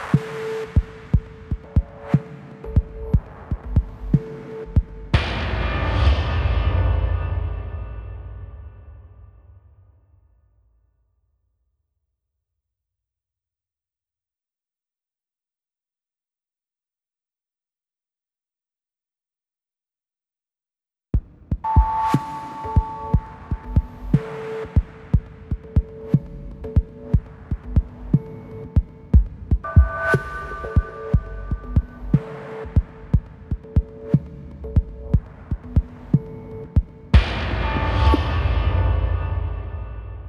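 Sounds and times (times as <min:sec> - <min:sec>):
drums at 120 BPM: 0:00.0 - 0:09.3, 0:21.2 - 0:40.2.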